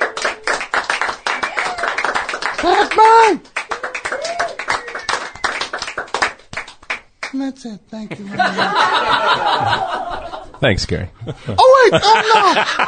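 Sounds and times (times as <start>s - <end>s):
audience clapping: 0.0s - 7.4s
speech: 2.9s - 3.5s, 7.5s - 12.8s
laughter: 8.1s - 10.6s, 11.2s - 12.8s.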